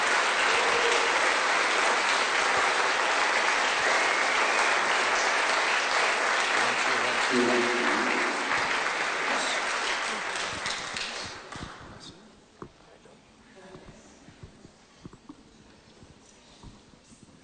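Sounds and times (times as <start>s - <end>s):
standing church congregation applauding at a Sunday morning service: 0.0s - 12.1s.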